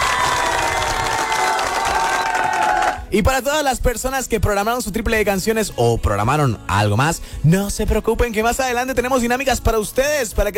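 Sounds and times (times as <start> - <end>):
audience applause: 0.0 - 3.0
speech: 3.1 - 10.5.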